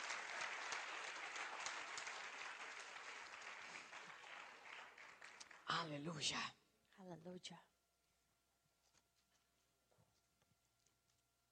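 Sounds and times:
audience clapping: 0.0s - 6.0s
speech: 5.8s - 7.7s.

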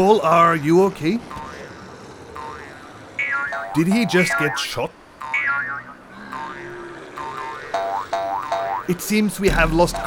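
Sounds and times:
speech: 0.0s - 1.4s, 3.7s - 5.0s, 8.9s - 10.0s
springy boing sound effects for kangaroos bouncing: 2.4s - 4.6s, 5.2s - 8.9s, 9.5s - 10.0s.

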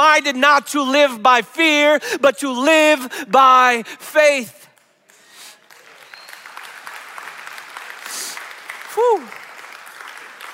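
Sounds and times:
speech: 0.2s - 4.7s, 9.0s - 9.4s
audience applause: 5.6s - 10.5s
rising-and-falling whoop: 8.9s - 9.5s.

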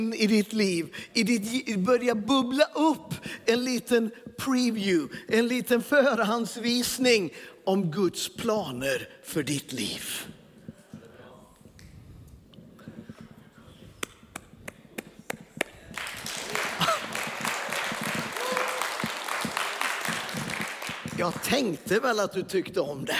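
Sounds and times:
speech: 0.0s - 10.4s, 21.2s - 23.1s
audience applauding in church: 15.0s - 21.9s.

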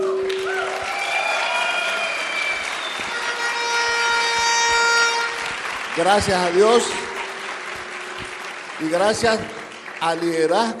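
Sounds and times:
crowd clapping and cheering: 0.0s - 10.7s
sustained horn-like blasts: 1.5s - 8.4s
speech: 6.0s - 7.0s, 8.8s - 10.7s.

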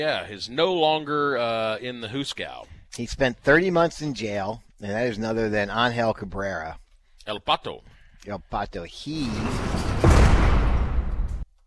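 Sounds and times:
speech: 0.0s - 10.1s
cell door slamming shut: 9.3s - 11.4s.

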